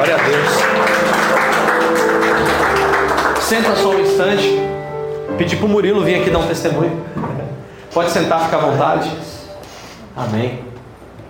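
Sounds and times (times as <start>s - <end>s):
audience applause: 0.0s - 4.2s
speech: 3.5s - 4.7s, 5.4s - 9.4s, 10.2s - 10.7s.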